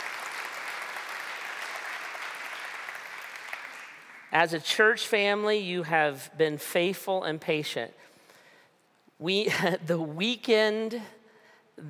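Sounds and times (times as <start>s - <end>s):
audience clapping: 0.0s - 4.4s
speech: 4.3s - 8.1s, 9.2s - 11.2s.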